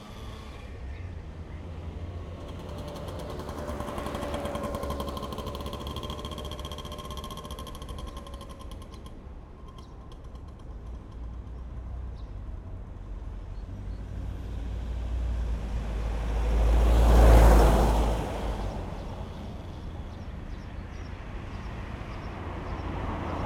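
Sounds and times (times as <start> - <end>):
car passing on a narrow street: 0.0 - 8.4, 14.4 - 20.2
daytime summer street traffic in Moscow: 0.0 - 23.4.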